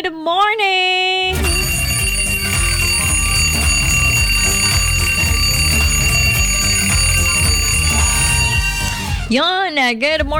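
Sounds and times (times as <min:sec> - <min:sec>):
speech: 0:00.0 - 0:00.8, 0:09.3 - 0:10.3
alarm clock ringing: 0:01.3 - 0:09.4.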